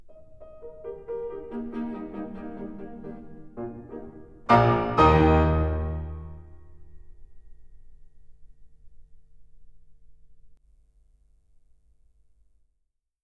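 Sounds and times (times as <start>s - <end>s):
cello and piano in E flat major: 0.0s - 8.5s.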